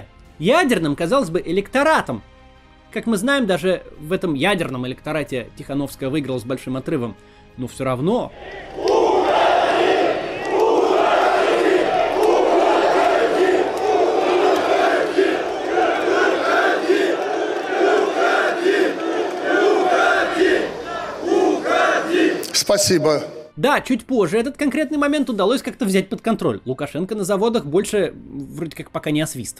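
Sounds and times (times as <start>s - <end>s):
speech: 0.4s - 2.3s, 2.9s - 8.9s, 22.7s - 29.5s
workers at Minsk Wheeled Tractor Plant chanting slogans: 8.3s - 22.6s.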